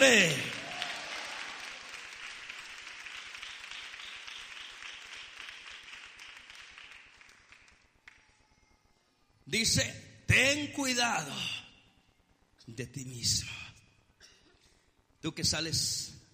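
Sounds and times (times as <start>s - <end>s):
audience applause: 0.0s - 8.2s
speech: 9.5s - 11.6s, 12.7s - 13.6s, 15.2s - 16.2s.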